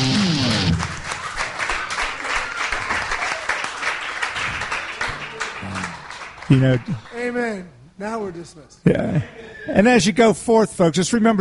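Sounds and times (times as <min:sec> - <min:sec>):
audience applause: 0:00.0 - 0:07.2
speech: 0:06.5 - 0:11.4.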